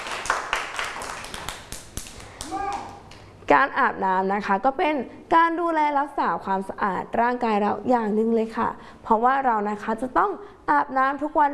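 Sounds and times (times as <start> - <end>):
hands clapping: 0.0 - 3.3
speech: 3.5 - 11.5.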